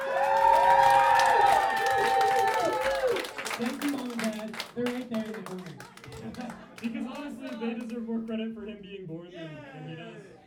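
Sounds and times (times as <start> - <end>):
audience applause: 0.0 - 7.6.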